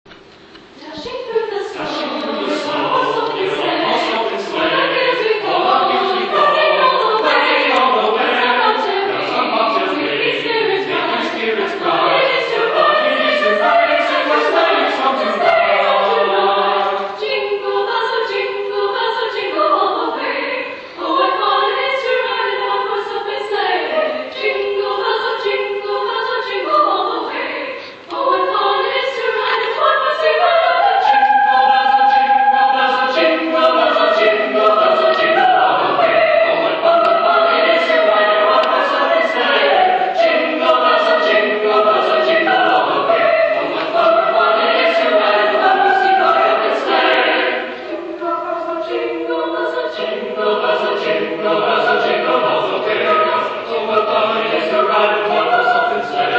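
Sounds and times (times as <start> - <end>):
a cappella singing: 0.8 - 56.3.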